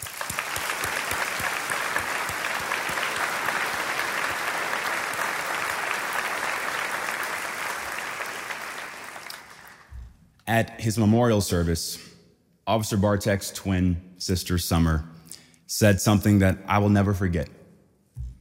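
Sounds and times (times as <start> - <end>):
audience applause: 0.0 - 9.9
speech: 10.5 - 12.1, 12.7 - 15.1, 15.7 - 17.6.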